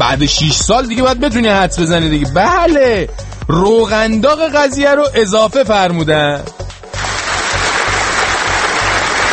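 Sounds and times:
speech: 0.1 - 6.6
audience applause: 7.0 - 9.3.

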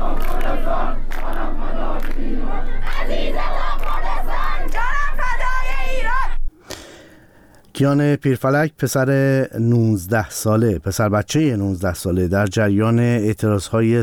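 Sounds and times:
protest crowd chanting anti-government slogans: 0.0 - 6.4
speech: 7.8 - 14.0.

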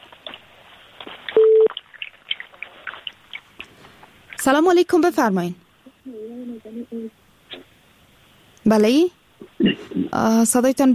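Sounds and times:
phone line crackles and clicks: 0.0 - 4.5
telephone line beep as a caller is connected: 1.4 - 1.7
speech: 4.4 - 5.6, 6.6 - 7.2, 8.7 - 9.2, 10.1 - 10.9.

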